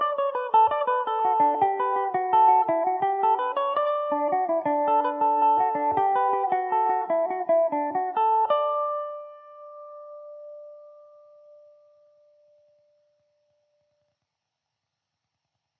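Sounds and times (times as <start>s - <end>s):
Irish mandolin playing in D major: 0.0s - 9.4s.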